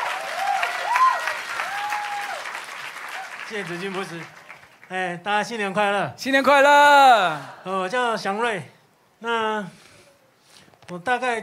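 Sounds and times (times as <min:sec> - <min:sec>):
audience clapping in welcome: 0:00.0 - 0:05.0
speech: 0:03.5 - 0:09.8, 0:10.9 - 0:11.4.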